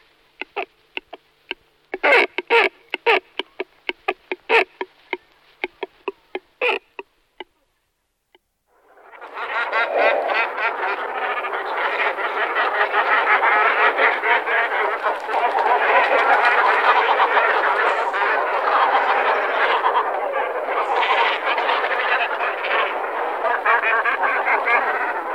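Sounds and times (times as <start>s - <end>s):
Great cormorant croaking calls: 0.4s - 7.5s, 8.8s - 25.3s
dense, continuous rough chorus of noise: 8.8s - 25.3s.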